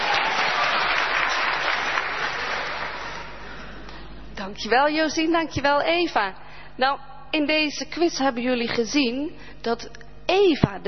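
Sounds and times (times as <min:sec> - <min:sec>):
audience applause: 0:00.0 - 0:03.6
speech: 0:04.6 - 0:10.8.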